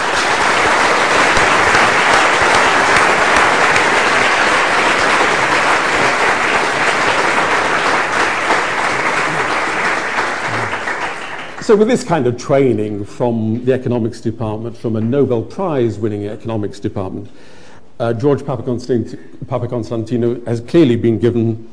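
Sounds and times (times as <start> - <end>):
audience applause: 0.0 - 11.9
speech: 11.7 - 21.7.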